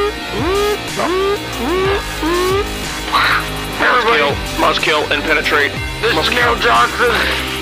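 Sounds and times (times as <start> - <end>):
electronic alarm like heavy metal sleigh bells: 0.0 - 2.8
speech: 0.4 - 3.4, 4.0 - 7.5.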